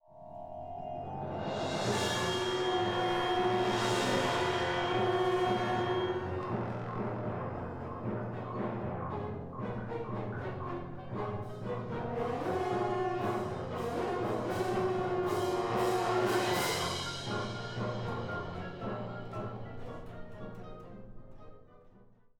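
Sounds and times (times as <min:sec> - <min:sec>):
orchestra: 0:00.0 - 0:22.2.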